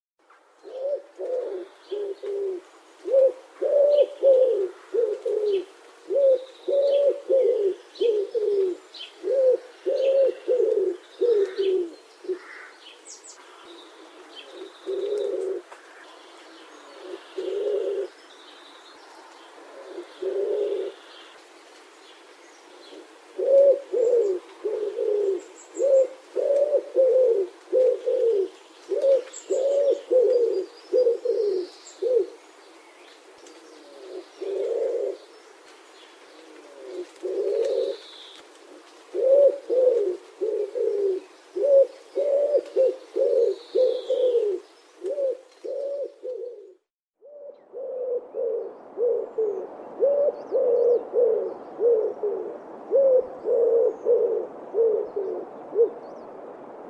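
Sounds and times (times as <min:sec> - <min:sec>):
wood pigeon calling: 0:00.6 - 0:18.3, 0:19.2 - 0:21.9, 0:22.6 - 0:56.4.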